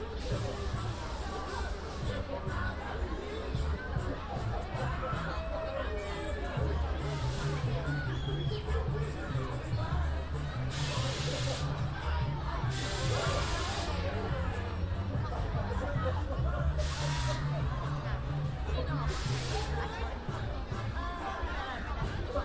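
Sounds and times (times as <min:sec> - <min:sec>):
babble of many voices in Hyde Park winter carnival: 0:00.0 - 0:22.4
hissing spray: 0:10.7 - 0:11.7, 0:12.7 - 0:14.0, 0:16.8 - 0:17.4, 0:19.1 - 0:19.7.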